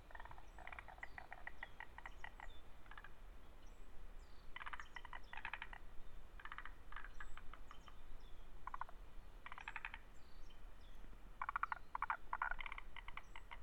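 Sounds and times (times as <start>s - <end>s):
frog giving rapid rattling croak bursts at Kamikochi Japan: 0.1s - 3.1s, 4.6s - 5.8s, 6.4s - 7.1s, 8.6s - 10.0s, 11.4s - 13.6s.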